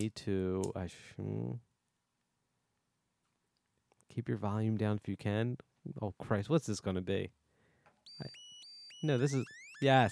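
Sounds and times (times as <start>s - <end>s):
speech: 0.0s - 1.7s, 4.1s - 7.4s, 8.1s - 8.4s, 9.0s - 10.1s
electronic alarm sound effect: 8.1s - 10.1s.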